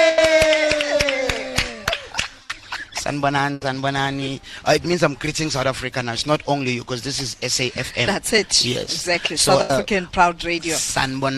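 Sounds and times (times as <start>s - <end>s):
rhythmic audience clapping for a comedian: 0.0s - 3.1s
speech: 3.1s - 11.3s.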